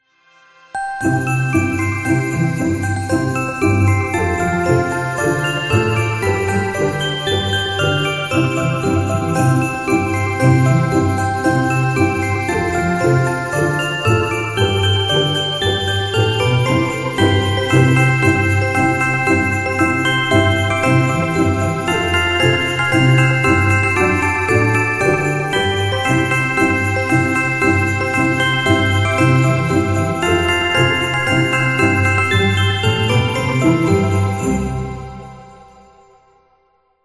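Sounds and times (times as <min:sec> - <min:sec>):
Christmas song: 0:00.3 - 0:37.0.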